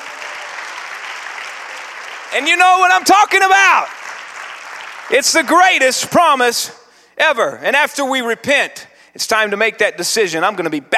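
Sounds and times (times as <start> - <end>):
audience clapping hands: 0.0 - 6.3
speech: 2.3 - 4.0, 5.1 - 10.9.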